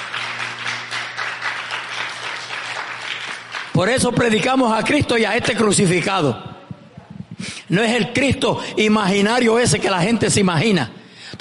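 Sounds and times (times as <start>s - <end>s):
audience applauding: 0.0s - 4.7s
speech: 3.8s - 6.5s, 7.7s - 11.4s.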